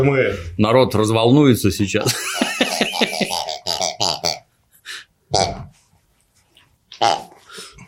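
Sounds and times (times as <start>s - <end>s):
speech: 0.0s - 2.4s
laughter: 2.0s - 3.4s
pigs grunting and squealing: 3.0s - 4.5s, 5.3s - 5.7s, 7.0s - 7.4s.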